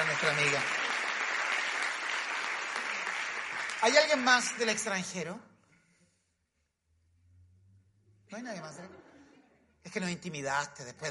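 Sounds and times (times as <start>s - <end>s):
audience applause: 0.0s - 5.0s
speech: 0.2s - 0.8s, 3.8s - 5.5s, 8.3s - 9.0s, 9.8s - 11.0s.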